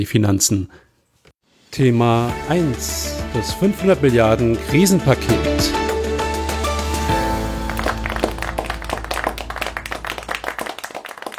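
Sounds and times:
speech: 0.0 - 0.9, 1.7 - 5.9
applause: 7.1 - 11.3.

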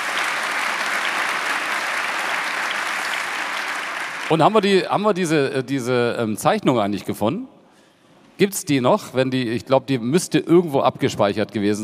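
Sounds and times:
audience applause: 0.0 - 4.8
speech: 4.3 - 7.6, 8.4 - 11.8.

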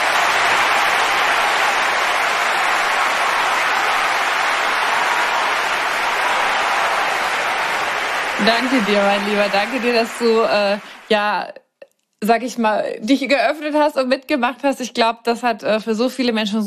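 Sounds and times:
applause sound effect: 0.0 - 11.4
speech: 8.4 - 11.6, 12.2 - 16.6.

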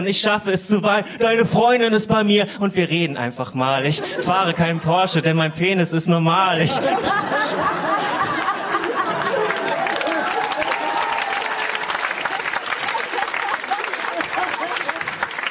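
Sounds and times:
speech: 0.0 - 7.9
laughter: 3.8 - 15.4
crowd voices: 6.6 - 15.4
audience applause: 7.4 - 15.4.

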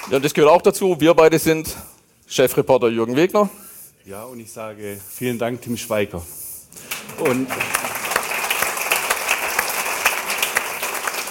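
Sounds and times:
speech: 0.1 - 7.9
audience applause in a hall: 6.8 - 11.2.

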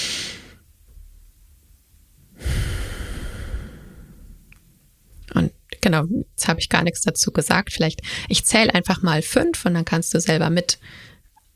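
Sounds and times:
slow breathing exercise of five counts in and three counts out: 2.3 - 4.9, 8.0 - 8.3, 10.8 - 11.3
speech: 5.9 - 11.1.

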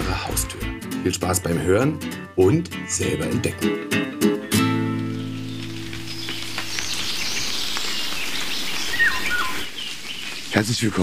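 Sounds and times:
speech: 1.0 - 4.3, 10.6 - 11.0
rain falling outdoors: 4.5 - 11.0.

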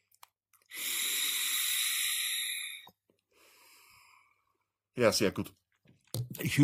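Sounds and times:
person taking a drag on an e-cigarette and exhaling vapor: 0.7 - 4.0
speech: 5.0 - 5.6, 6.4 - 6.6.

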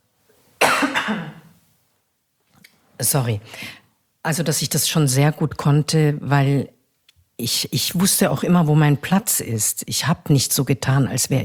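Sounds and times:
person coughing: 0.6 - 1.6
speech: 1.1 - 1.3, 3.0 - 6.8, 7.4 - 11.4.

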